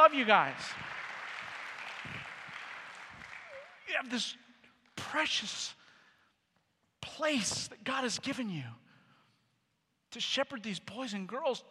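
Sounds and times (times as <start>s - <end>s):
crowd applause: 0.0s - 3.9s
speech: 0.1s - 0.9s, 3.9s - 4.4s, 5.0s - 5.8s, 7.2s - 8.8s, 10.1s - 11.6s.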